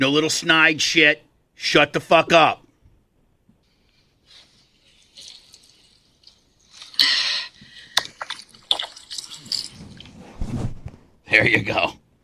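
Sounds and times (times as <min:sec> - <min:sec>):
speech: 0:00.0 - 0:02.6, 0:11.3 - 0:12.0
garden hose spraying water: 0:03.8 - 0:10.1.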